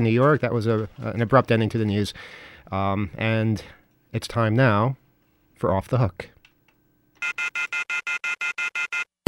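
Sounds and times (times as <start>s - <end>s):
speech: 0.0s - 5.0s, 5.6s - 6.4s, 7.2s - 8.2s
telephone ringing: 7.2s - 9.1s.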